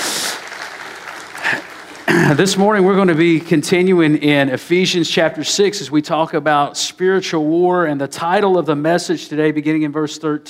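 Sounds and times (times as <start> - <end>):
audience applauding: 0.0 - 3.4
speech: 2.1 - 10.4.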